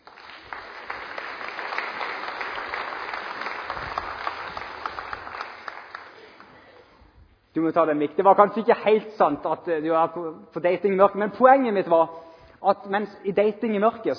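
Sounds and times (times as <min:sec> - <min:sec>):
audience applause: 0:00.0 - 0:06.7
speech: 0:07.6 - 0:14.1.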